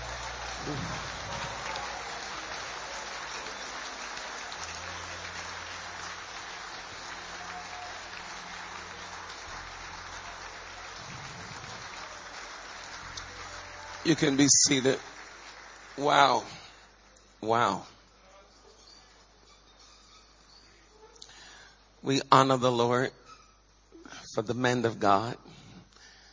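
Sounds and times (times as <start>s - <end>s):
congregation clapping hands: 0.0s - 17.1s
speech: 14.1s - 15.1s, 16.0s - 16.6s, 17.4s - 17.9s, 22.0s - 23.2s, 24.4s - 25.6s.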